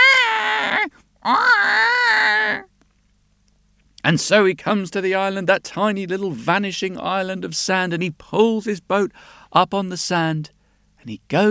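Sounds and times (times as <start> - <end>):
baby crying: 0.0 - 2.7
speech: 1.2 - 1.5, 4.1 - 11.5.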